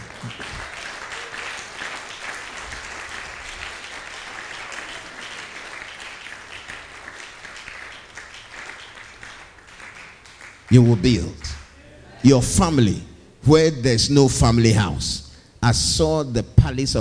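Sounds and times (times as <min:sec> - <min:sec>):
audience clapping: 0:00.0 - 0:11.8
speech: 0:10.7 - 0:11.5, 0:12.2 - 0:17.0.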